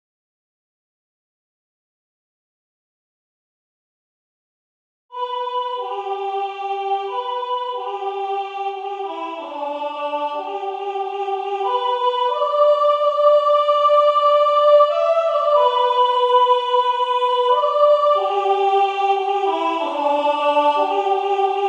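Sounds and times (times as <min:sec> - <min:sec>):
soprano singing: 0:05.2 - 0:21.6.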